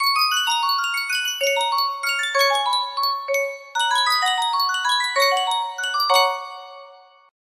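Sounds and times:
Sankyo miniature music box: 0.0s - 7.3s.

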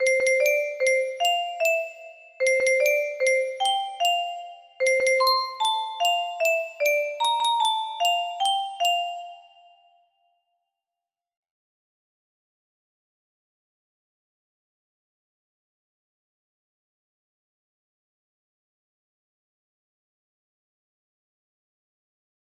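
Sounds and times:
music box playing a birthday song: 0.0s - 9.9s.

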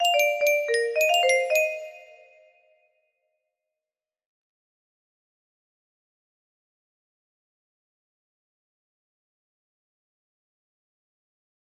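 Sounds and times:
melody: 0.0s - 2.4s.

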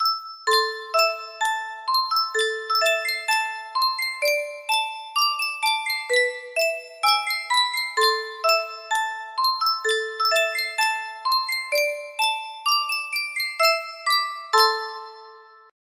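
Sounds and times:
Sankyo music box melody: 0.0s - 15.8s.

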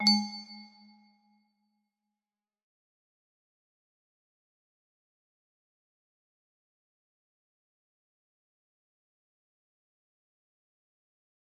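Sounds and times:
music box: 0.0s - 0.8s.

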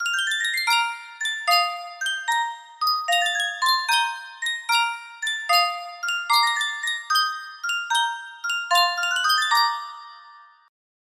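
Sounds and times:
Sankyo miniature music box melody: 0.0s - 10.7s.

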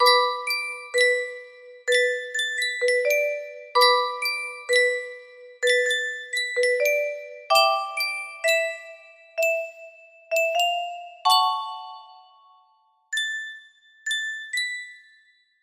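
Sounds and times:
music box melody: 0.0s - 15.5s.

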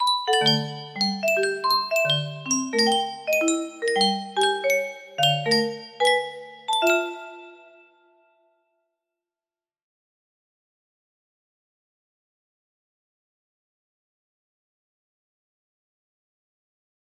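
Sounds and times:
wind chimes: 0.0s - 7.9s
music box melody: 0.0s - 8.0s.

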